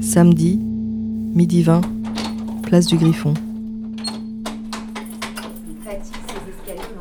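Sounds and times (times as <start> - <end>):
speech: 0.1 - 0.7, 1.4 - 2.0, 2.7 - 3.4
key grinding in a stiff door lock: 1.8 - 6.9.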